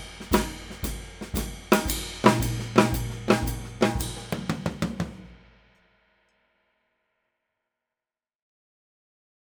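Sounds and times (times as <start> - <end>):
Ludwig WMP 13 16 20 drums: 0.0 - 5.9.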